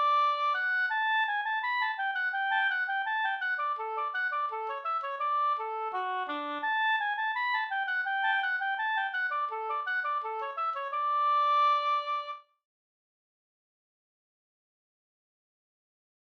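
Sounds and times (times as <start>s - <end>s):
folk walking tune: 0.0s - 12.3s.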